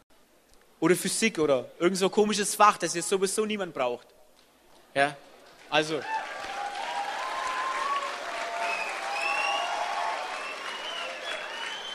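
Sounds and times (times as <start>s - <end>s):
speech: 0.8s - 4.2s, 5.0s - 6.2s
audience applause: 5.5s - 11.9s.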